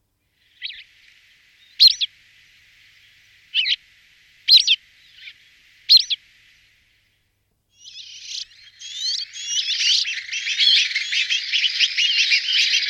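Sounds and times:
rock sparrow chirping: 0:01.8 - 0:02.1, 0:04.5 - 0:05.3, 0:05.9 - 0:06.2, 0:07.8 - 0:12.8.

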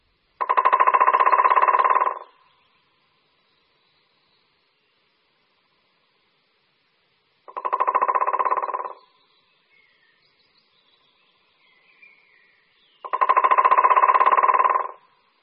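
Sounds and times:
white-backed woodpecker drumming: 0:00.4 - 0:02.4, 0:07.4 - 0:09.1, 0:13.0 - 0:15.1
faint bird calls: 0:00.4 - 0:02.8, 0:07.5 - 0:15.1.

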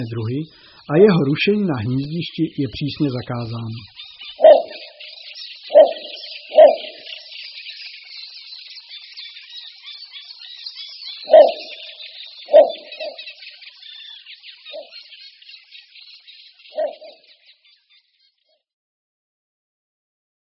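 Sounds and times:
speech: 0:00.0 - 0:04.0
little bittern barking: 0:04.4 - 0:05.0, 0:05.7 - 0:07.1, 0:11.3 - 0:11.9, 0:12.5 - 0:13.2, 0:16.8 - 0:17.2.

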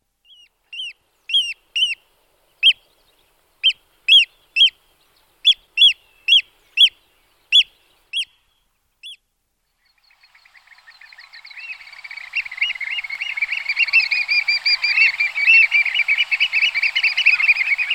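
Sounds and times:
Eurasian oystercatcher calls: 0:00.3 - 0:02.0, 0:03.6 - 0:04.8, 0:05.4 - 0:08.4, 0:10.2 - 0:17.9.

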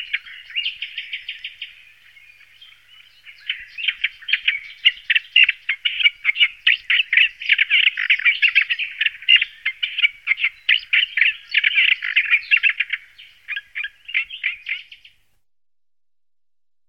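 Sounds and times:
olive-tree warbler scratchy chattering song: 0:03.2 - 0:15.2.

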